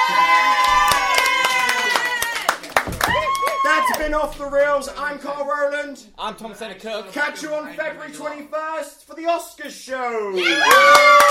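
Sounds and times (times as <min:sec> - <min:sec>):
people cheering: 0:00.0 - 0:05.2, 0:10.4 - 0:11.2
hand claps: 0:00.6 - 0:04.0, 0:10.6 - 0:11.2
speech: 0:04.1 - 0:11.2.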